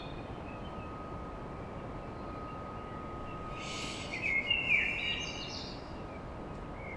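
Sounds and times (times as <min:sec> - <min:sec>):
faint hum: 0:00.3 - 0:06.5
common blackbird singing: 0:03.4 - 0:05.8.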